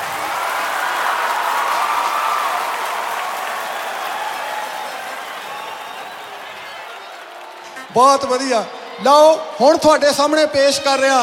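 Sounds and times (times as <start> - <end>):
large crowd clapping for a singer at a live music event: 0.0 - 8.4
speech: 8.0 - 11.2.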